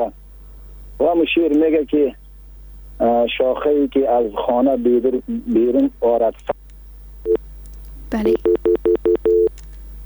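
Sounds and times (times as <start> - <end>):
speech: 0.0 - 0.2, 1.0 - 2.2, 3.0 - 6.6, 8.1 - 8.5
phone line beeps as a call cuts off: 8.2 - 9.5.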